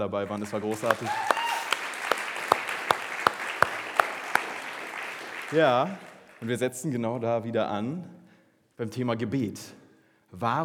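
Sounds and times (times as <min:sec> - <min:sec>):
speech: 0:00.0 - 0:01.4, 0:05.5 - 0:08.2, 0:08.8 - 0:10.6
audience applause: 0:00.0 - 0:06.7.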